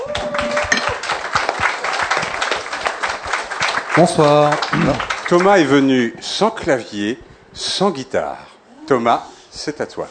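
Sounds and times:
audience ovation for a newcomer: 0:00.0 - 0:05.8
speech: 0:04.0 - 0:10.1.

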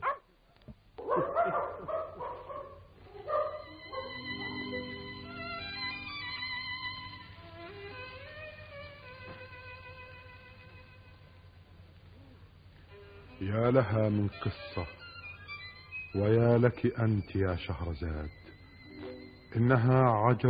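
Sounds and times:
dog barking: 0:00.0 - 0:00.3, 0:01.0 - 0:04.5
dog whining: 0:01.0 - 0:04.8
speech: 0:13.4 - 0:15.0, 0:16.1 - 0:18.5, 0:19.6 - 0:20.4.

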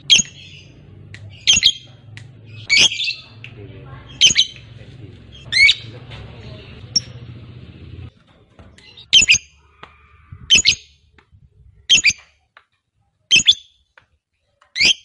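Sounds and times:
fighter-type lovebird giving drawn-out chattering song: 0:00.0 - 0:01.9, 0:02.5 - 0:03.4, 0:04.0 - 0:05.9, 0:06.8 - 0:07.2, 0:08.8 - 0:09.6, 0:10.5 - 0:11.0, 0:11.8 - 0:12.2, 0:13.3 - 0:13.8, 0:14.8 - 0:15.0.

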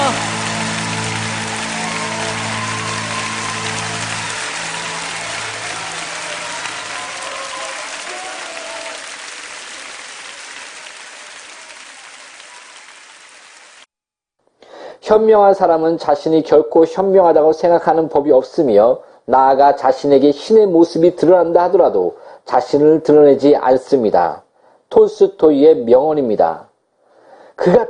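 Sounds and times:
applause: 0:00.0 - 0:13.9
speech: 0:15.1 - 0:26.7, 0:27.6 - 0:27.8.

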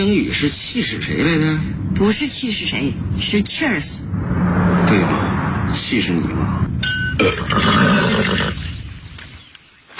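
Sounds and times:
speech: 0:00.0 - 0:04.3, 0:04.9 - 0:06.6, 0:07.2 - 0:08.6
horse neighing: 0:07.2 - 0:08.7.

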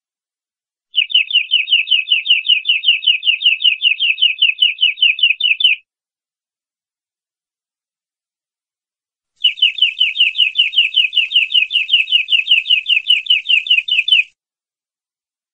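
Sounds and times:
canary singing: 0:00.9 - 0:05.8, 0:09.4 - 0:14.3.

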